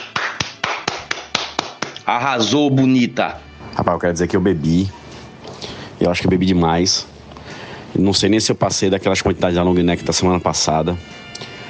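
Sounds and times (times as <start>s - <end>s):
single person hand clapping: 0.0s - 2.5s
speech: 2.1s - 5.0s, 6.0s - 7.1s, 7.9s - 11.4s.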